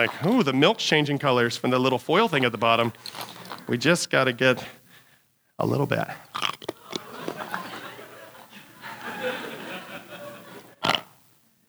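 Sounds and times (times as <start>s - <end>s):
speech: 0.0s - 4.8s, 5.6s - 6.5s
hard candy being bitten and chewed: 0.0s - 8.6s, 10.6s - 11.4s
laughter: 6.8s - 11.2s.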